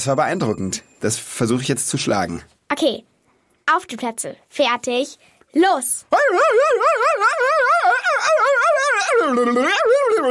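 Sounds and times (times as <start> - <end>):
speech: 0.0 - 3.1, 3.7 - 10.3
person yodeling: 6.1 - 10.3.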